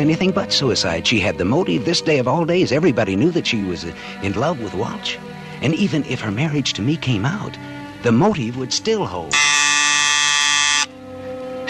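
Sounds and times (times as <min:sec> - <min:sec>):
speech: 0:00.0 - 0:09.5
doorbell ringing: 0:09.3 - 0:10.9.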